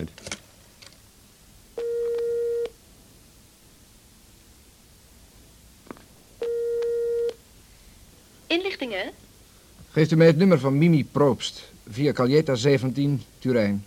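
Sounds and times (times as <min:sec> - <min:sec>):
quiet hiss: 0:00.0 - 0:13.8
telephone ringback tones: 0:01.8 - 0:02.7, 0:06.4 - 0:07.4
speech: 0:08.5 - 0:09.2, 0:10.0 - 0:13.8.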